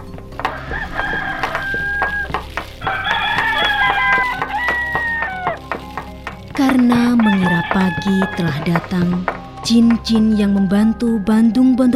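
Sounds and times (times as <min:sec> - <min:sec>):
roosters crowing: 0:00.4 - 0:09.3
scratchy barnyard noise: 0:00.4 - 0:09.4
speech: 0:07.7 - 0:11.9.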